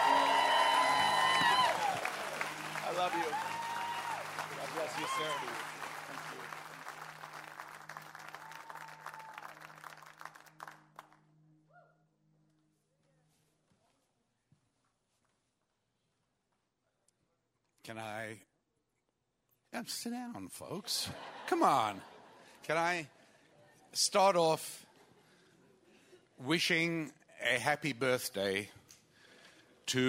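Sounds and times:
audience applause and cheering welcome: 0.0s - 11.2s
speech: 3.1s - 3.6s, 4.8s - 6.4s, 17.9s - 18.5s, 19.8s - 23.2s, 23.9s - 24.8s, 26.4s - 28.8s, 29.9s - 30.0s
laughter: 20.8s - 23.0s.

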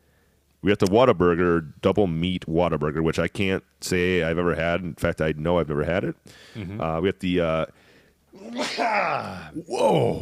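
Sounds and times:
speech: 0.6s - 7.8s, 8.4s - 10.2s
sneeze: 8.4s - 9.4s.

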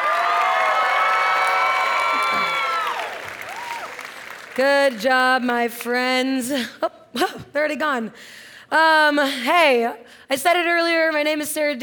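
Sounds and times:
audience applauding and cheering for a stage cast: 0.0s - 4.6s
speech: 4.6s - 11.8s.

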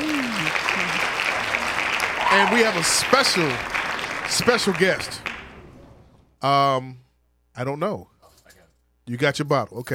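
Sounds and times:
hand clapping from a small audience: 0.0s - 5.8s
speech: 2.4s - 5.3s, 6.4s - 7.0s, 7.6s - 8.1s, 9.1s - 9.9s.

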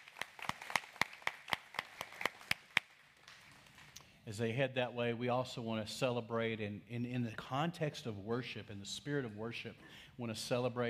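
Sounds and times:
audience clapping: 0.0s - 4.0s
speech: 4.3s - 10.8s.

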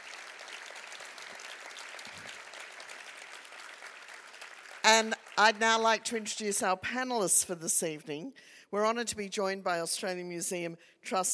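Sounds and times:
audience applause: 0.0s - 5.4s
speech: 4.9s - 11.3s.

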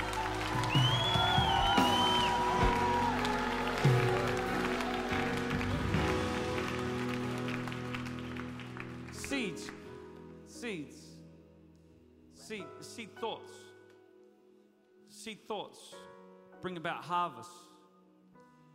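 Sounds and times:
audience clapping: 0.0s - 10.0s
speech: 12.5s - 13.6s, 15.2s - 17.7s.

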